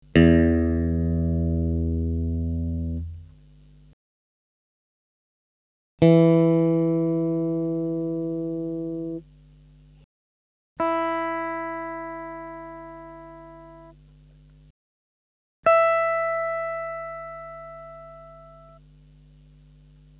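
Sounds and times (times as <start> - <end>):
electric guitar: 0.1 - 3.2, 6.0 - 9.2, 10.8 - 13.9, 15.7 - 18.8.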